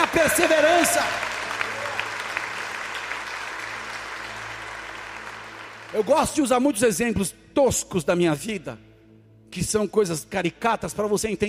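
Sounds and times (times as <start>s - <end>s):
audience applauding: 0.0s - 6.5s
speech: 0.1s - 1.3s, 5.9s - 8.9s, 9.5s - 11.4s.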